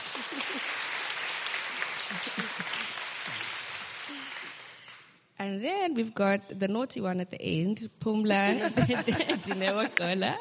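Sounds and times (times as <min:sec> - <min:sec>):
laughter: 0:00.0 - 0:01.0, 0:01.8 - 0:03.0, 0:08.5 - 0:10.4
applause: 0:00.0 - 0:05.1
speech: 0:02.1 - 0:02.5, 0:05.4 - 0:10.4.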